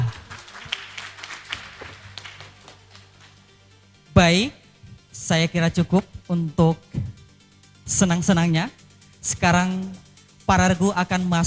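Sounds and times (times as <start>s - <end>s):
light applause for three finalist teams at a competition: 0.0s - 3.5s
speech: 4.2s - 4.6s, 5.3s - 7.1s, 7.9s - 11.4s.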